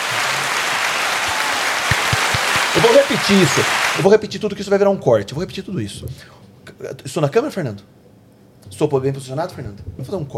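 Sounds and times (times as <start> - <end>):
group applauding: 0.0 - 4.0
speech: 2.8 - 8.0, 8.6 - 10.3.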